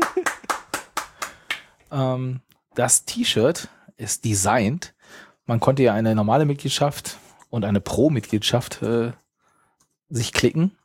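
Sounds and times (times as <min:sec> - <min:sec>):
hand claps from a few people: 0:00.0 - 0:01.8
speech: 0:01.9 - 0:09.2, 0:10.1 - 0:10.8.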